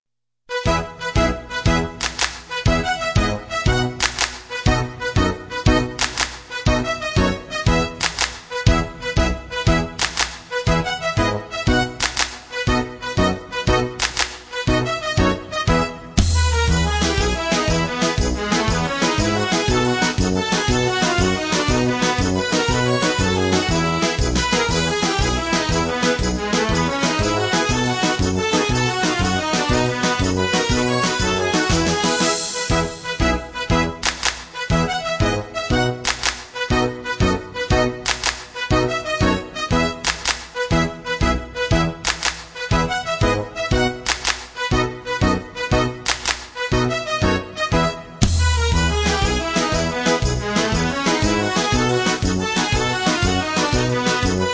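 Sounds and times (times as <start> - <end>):
Mexican folk dance tune: 0.5 - 54.5.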